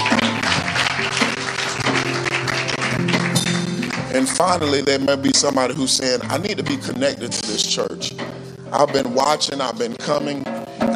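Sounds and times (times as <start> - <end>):
crowd applause: 0.0 - 4.3
low musical tone: 0.0 - 10.9
speech: 4.4 - 10.9.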